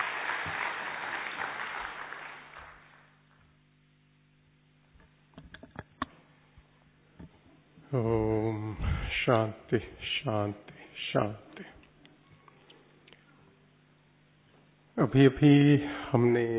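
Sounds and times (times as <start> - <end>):
audience applause: 0.0 - 3.4
scattered sharp claps or taps: 0.0 - 3.5
speech: 7.9 - 11.5, 15.0 - 16.5.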